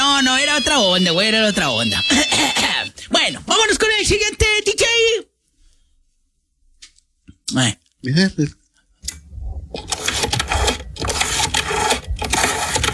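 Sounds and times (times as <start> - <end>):
speech: 0.6 - 5.3, 7.5 - 8.6
rotary dial telephone being dialed: 9.8 - 12.9.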